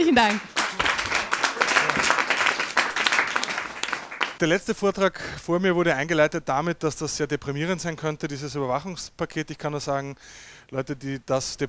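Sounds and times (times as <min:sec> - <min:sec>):
speech: 0:00.0 - 0:00.5, 0:04.4 - 0:11.6
audience applause welcoming a speaker: 0:00.0 - 0:04.4.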